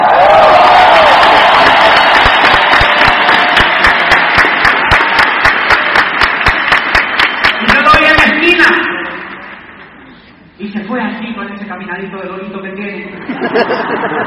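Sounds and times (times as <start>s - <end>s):
crowd applause settling into rhythmic unison clapping: 0.0s - 8.2s
laughter: 13.2s - 14.2s
speech: 13.5s - 14.2s.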